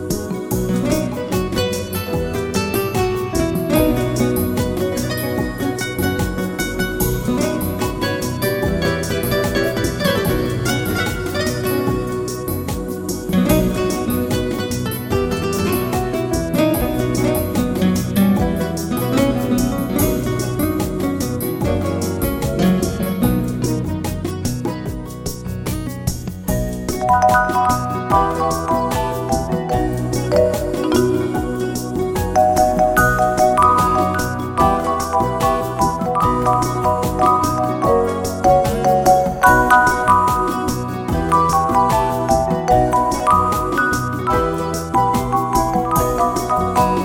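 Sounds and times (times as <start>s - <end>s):
bossa nova music: 0.0s - 47.0s.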